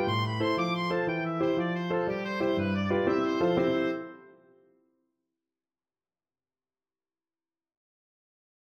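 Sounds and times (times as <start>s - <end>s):
oboe playing an Irish jig medley: 0.0s - 4.4s.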